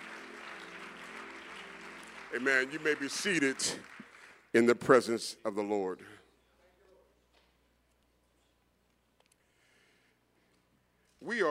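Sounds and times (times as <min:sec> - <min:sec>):
crowd clapping: 0:00.0 - 0:04.9
speech: 0:02.3 - 0:03.9, 0:04.5 - 0:06.2.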